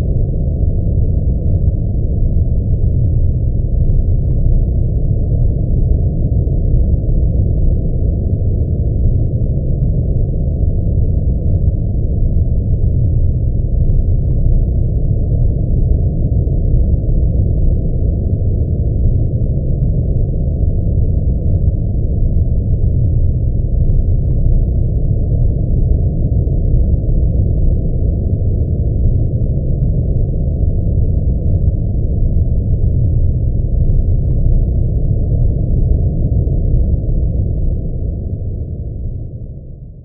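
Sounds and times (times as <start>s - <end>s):
cold underwater rumble drone: 0.0s - 40.0s.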